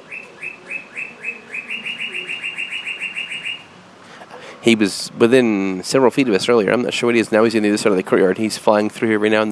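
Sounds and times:
bird chirping loudly in a courtyard: 0:00.0 - 0:03.8
speech: 0:04.6 - 0:09.4.

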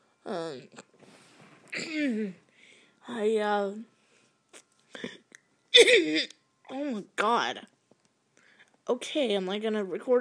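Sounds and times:
speech: 0:00.2 - 0:00.9, 0:01.8 - 0:02.4, 0:03.1 - 0:03.9, 0:05.8 - 0:07.7, 0:08.9 - 0:10.1
throat clearing: 0:01.7 - 0:02.4.

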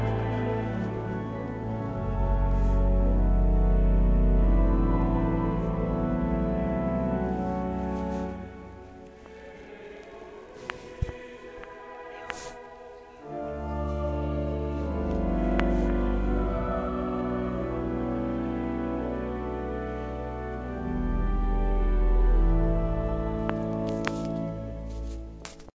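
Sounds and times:
choir at Norwich Cathedral: 0:00.0 - 0:02.9, 0:09.0 - 0:20.0
organ at Norwich Cathedral: 0:00.0 - 0:25.7.

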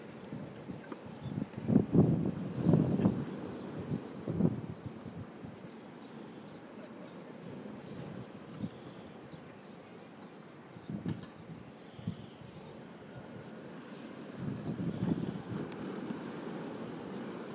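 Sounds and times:
wind noise: 0:00.0 - 0:05.6, 0:10.8 - 0:13.5, 0:14.3 - 0:17.5
choppy sea waves: 0:00.0 - 0:17.5.

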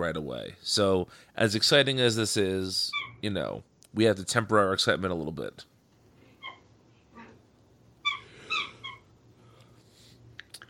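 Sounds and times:
speech: 0:00.0 - 0:05.7
squeaky dog toy squealing: 0:02.9 - 0:03.2, 0:06.4 - 0:06.6, 0:08.0 - 0:09.1.

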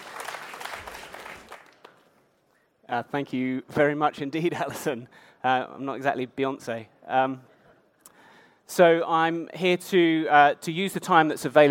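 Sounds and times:
faint conference audience applause welcoming a speaker to the stage: 0:00.0 - 0:02.2
speech: 0:02.9 - 0:07.5, 0:08.7 - 0:11.6.

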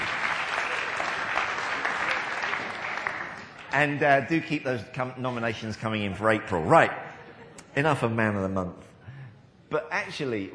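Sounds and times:
audience applause: 0:00.0 - 0:04.3
speech: 0:03.7 - 0:07.0, 0:07.7 - 0:08.9, 0:09.7 - 0:10.5.

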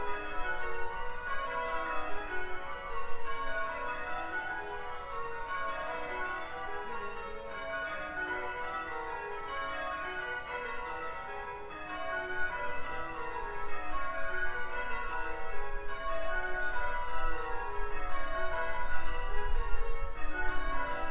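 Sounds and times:
old church bells ringing: 0:00.0 - 0:21.0.

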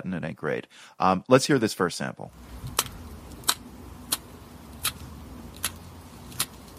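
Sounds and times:
speech: 0:00.0 - 0:02.8
low hum: 0:02.3 - 0:06.7
yellow-margined box turtle clicking call: 0:02.4 - 0:06.7.

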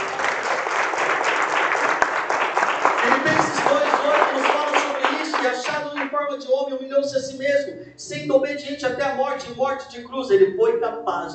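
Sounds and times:
audience applause: 0:00.0 - 0:06.2
speech: 0:06.3 - 0:11.3.

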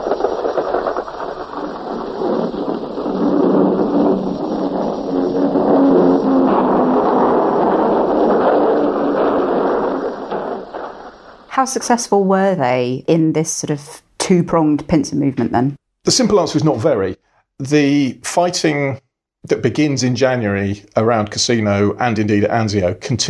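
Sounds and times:
bombs exploding during an air raid: 0:00.0 - 0:12.4
speech: 0:11.6 - 0:23.2.

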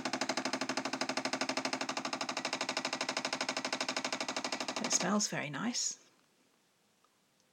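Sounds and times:
coffee pod machine heating water: 0:00.0 - 0:05.2
speech: 0:04.9 - 0:06.0.

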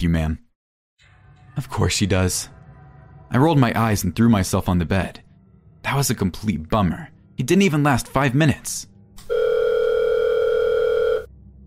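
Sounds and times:
speech: 0:00.0 - 0:00.4, 0:01.6 - 0:02.6, 0:03.3 - 0:05.2, 0:05.8 - 0:08.9
telephone ringing: 0:09.2 - 0:11.3.

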